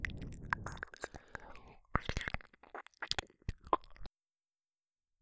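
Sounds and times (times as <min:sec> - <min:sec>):
ear licking: 0:00.0 - 0:04.1.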